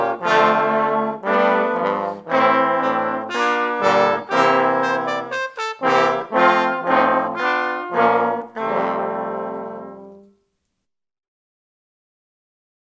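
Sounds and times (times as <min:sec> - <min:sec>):
ensemble playing tutti: 0:00.0 - 0:10.3.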